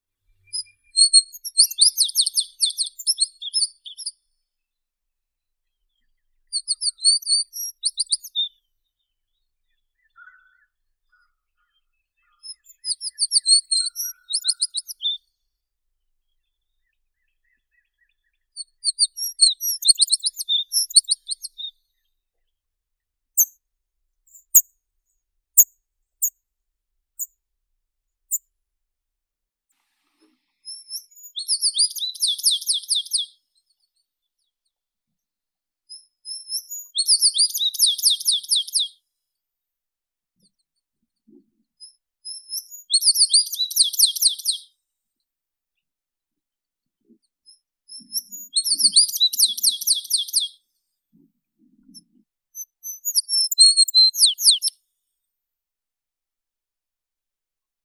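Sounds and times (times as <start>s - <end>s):
American tree sparrow Spizella arborea singing: 0.4s - 4.2s, 6.0s - 8.6s, 9.7s - 15.2s, 16.8s - 21.7s, 23.4s - 23.6s, 24.3s - 24.7s, 30.6s - 33.3s, 35.9s - 38.9s, 41.3s - 44.7s, 47.0s - 50.5s, 51.2s - 54.7s.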